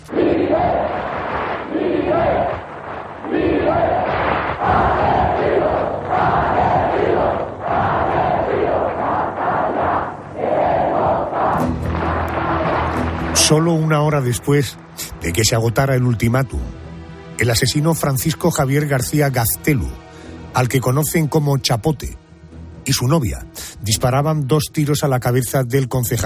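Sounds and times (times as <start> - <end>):
crowd of protesters demonstrating: 0.0 - 13.9
speech: 13.5 - 16.8, 17.4 - 22.2, 22.9 - 26.2.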